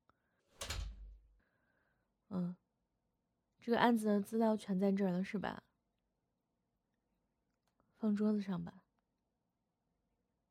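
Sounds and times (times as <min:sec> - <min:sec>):
office door being closed: 0:00.6 - 0:01.2
speech: 0:02.3 - 0:02.6, 0:03.6 - 0:05.7, 0:08.0 - 0:08.8.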